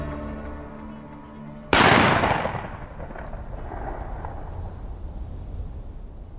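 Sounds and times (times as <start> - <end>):
gunshot echoing in mountains at night: 1.7 - 4.8.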